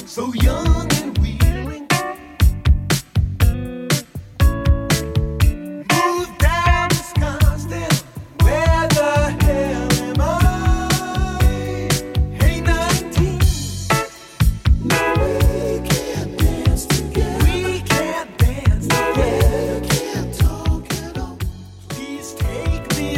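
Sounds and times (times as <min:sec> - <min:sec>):
80s drum machine beat: 0:00.0 - 0:23.1.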